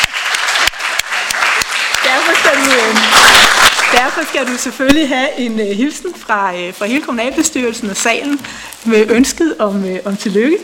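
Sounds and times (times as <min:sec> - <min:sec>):
audience applause in a council hall: 0:00.0 - 0:04.9
speech: 0:02.4 - 0:10.6.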